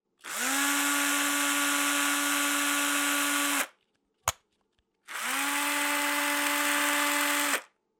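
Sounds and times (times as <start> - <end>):
screwdriver: 0.2 - 3.7, 5.1 - 7.7.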